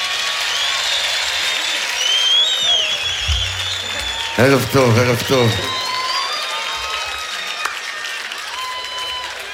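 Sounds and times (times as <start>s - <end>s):
audience applause: 0.0s - 9.5s
speech: 4.4s - 5.8s.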